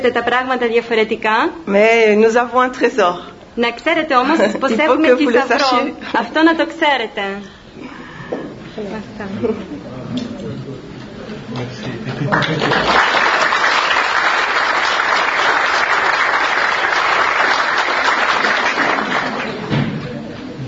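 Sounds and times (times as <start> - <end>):
speech: 0.0 - 7.6, 8.8 - 10.3, 11.6 - 13.2
audience applause: 12.2 - 19.8.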